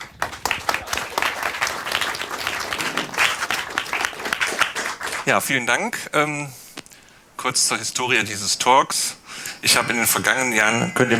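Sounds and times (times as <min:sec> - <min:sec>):
applause: 0:00.0 - 0:05.4
laughter: 0:00.0 - 0:05.6, 0:08.7 - 0:11.1
speech: 0:05.3 - 0:06.6, 0:07.4 - 0:11.1.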